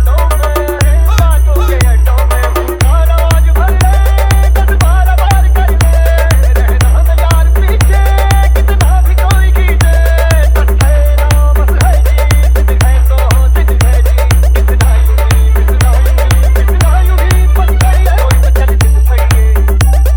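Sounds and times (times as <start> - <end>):
humming dance mix: 0.0 - 20.1.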